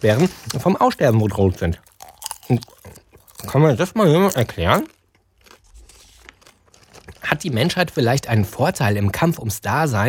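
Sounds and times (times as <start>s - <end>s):
speech: 0.0s - 1.9s, 2.5s - 2.7s, 3.4s - 5.0s, 7.4s - 10.0s
popcorn crunching: 0.2s - 8.0s.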